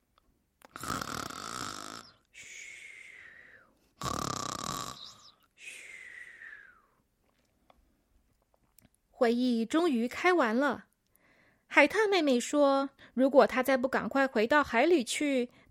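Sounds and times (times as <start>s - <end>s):
person imitating a sleeping koala's snoring: 0.7s - 2.3s, 4.0s - 5.4s
speech: 9.2s - 10.9s, 11.8s - 15.7s.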